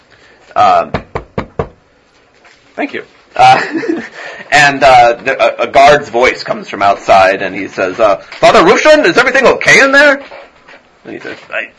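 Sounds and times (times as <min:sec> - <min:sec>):
speech: 0:00.6 - 0:01.0, 0:02.8 - 0:10.4, 0:11.0 - 0:11.7
knocking on a door: 0:00.9 - 0:01.8
laughter: 0:03.4 - 0:04.5.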